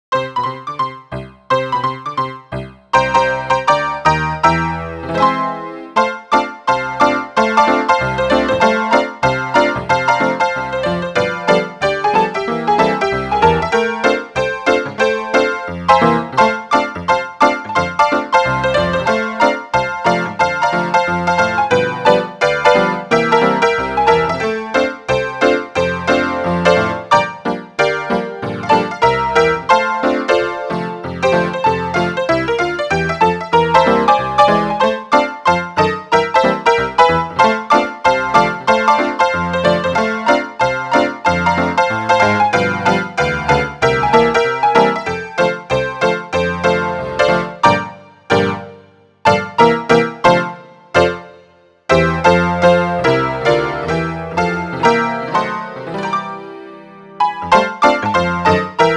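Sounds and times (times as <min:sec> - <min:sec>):
music: 0:00.0 - 0:58.9.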